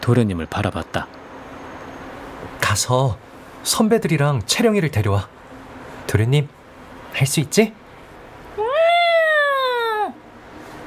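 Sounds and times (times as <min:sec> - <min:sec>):
speech: 0:00.0 - 0:01.2, 0:02.7 - 0:05.4, 0:06.1 - 0:07.8
cat meowing: 0:08.6 - 0:10.2.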